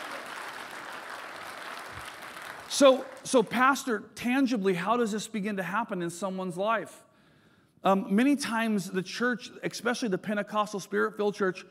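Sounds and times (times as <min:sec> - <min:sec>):
audience applause: 0:00.0 - 0:03.5
speech: 0:02.7 - 0:07.0, 0:07.8 - 0:11.6.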